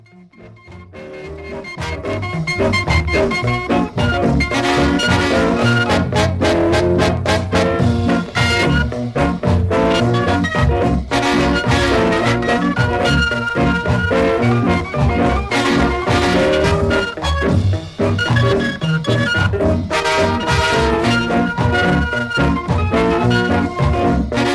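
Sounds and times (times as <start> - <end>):
ska shuffle: 0.0 - 24.5.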